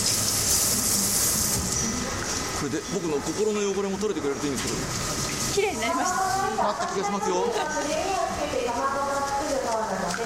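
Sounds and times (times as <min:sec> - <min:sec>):
tap water running at a kitchen sink while washing hands: 0:00.0 - 0:05.9
speech: 0:02.6 - 0:10.2.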